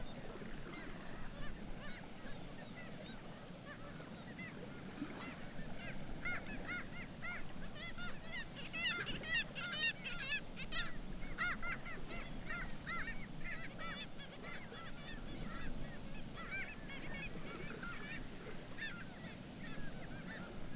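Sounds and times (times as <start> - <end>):
black-legged kittiwake colony calls: 0.0 - 20.7.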